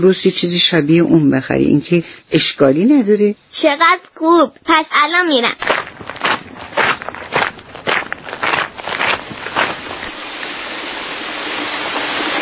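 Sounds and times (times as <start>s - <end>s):
speech: 0.0s - 5.9s
heavy rain falling: 8.5s - 12.3s.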